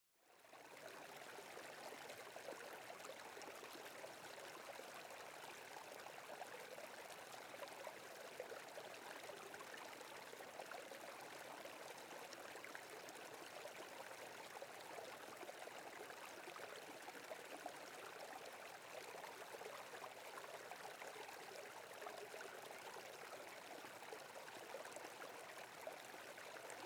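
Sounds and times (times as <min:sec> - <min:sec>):
river: 0:00.2 - 0:26.8.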